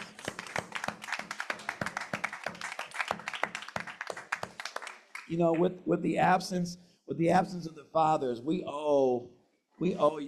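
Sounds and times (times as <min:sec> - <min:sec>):
small crowd clapping: 0:00.0 - 0:05.8, 0:09.9 - 0:10.2
speech: 0:05.3 - 0:10.2.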